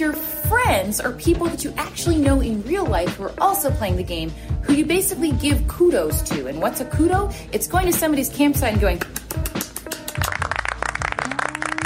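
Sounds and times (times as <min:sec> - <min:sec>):
speech: 0:00.0 - 0:09.2
hand clapping: 0:09.0 - 0:11.8.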